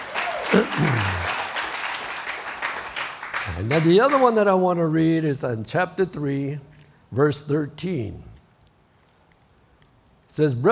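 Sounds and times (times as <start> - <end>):
audience clapping: 0.0 - 4.5
speech: 0.5 - 1.4, 3.6 - 8.3, 10.4 - 10.7.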